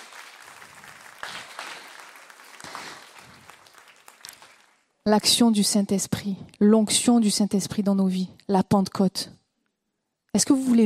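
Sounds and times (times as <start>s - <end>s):
audience clapping: 0.0s - 5.0s
speech: 5.0s - 9.4s, 10.3s - 10.8s.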